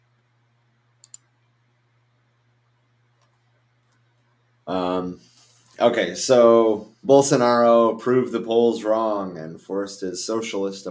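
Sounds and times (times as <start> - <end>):
computer mouse clicks while opening a news article: 1.0 - 1.3
speech: 4.7 - 10.8.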